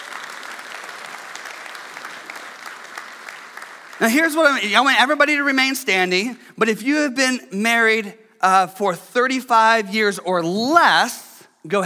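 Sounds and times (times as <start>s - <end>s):
audience applause: 0.0s - 4.6s
speech: 4.0s - 11.8s.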